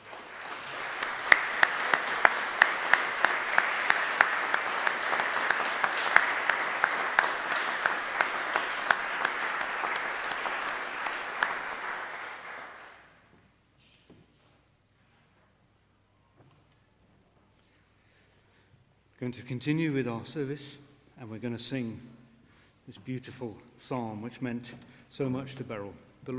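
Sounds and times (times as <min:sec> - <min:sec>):
big round of applause: 0:00.0 - 0:13.3
speech: 0:19.3 - 0:22.2, 0:22.9 - 0:26.3.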